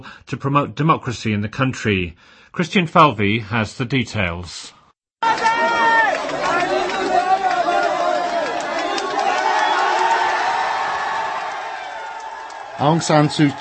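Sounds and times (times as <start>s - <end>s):
speech: 0.0s - 5.7s, 12.8s - 13.6s
crowd of supporters cheering: 5.2s - 13.6s.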